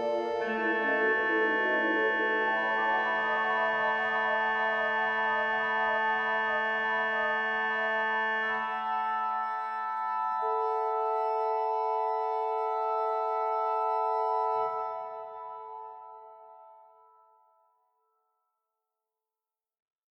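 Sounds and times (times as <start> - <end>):
flutes: 0.0 - 17.3.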